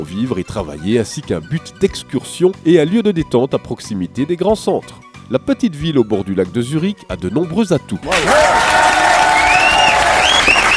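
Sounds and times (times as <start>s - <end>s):
speech: 0.0s - 8.9s
audience clapping: 8.1s - 10.7s
crowd cheering: 8.1s - 10.7s
whistles from the crowd: 9.3s - 10.7s.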